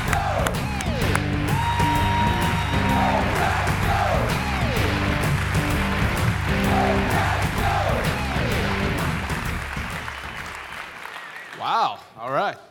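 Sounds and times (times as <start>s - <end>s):
church audience applause at Life Church: 0.0s - 11.9s
people whooping: 1.4s - 3.6s.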